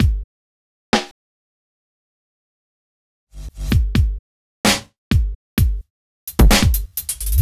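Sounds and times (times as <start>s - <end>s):
drums: 0.0s - 0.2s, 3.4s - 7.4s.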